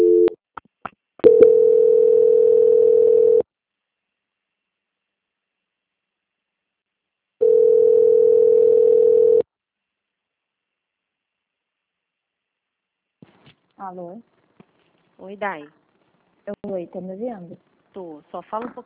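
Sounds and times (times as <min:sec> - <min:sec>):
long steady telephone line tone during call transfer: 0:00.0 - 0:00.4, 0:01.2 - 0:03.5, 0:07.4 - 0:09.4
speech: 0:13.9 - 0:14.3, 0:15.3 - 0:15.8, 0:16.6 - 0:18.8.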